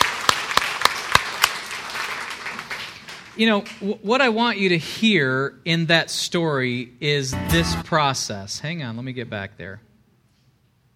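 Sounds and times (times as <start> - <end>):
audience applause: 0.0 - 3.2
sharp claps: 0.0 - 3.2
speech: 3.4 - 9.9.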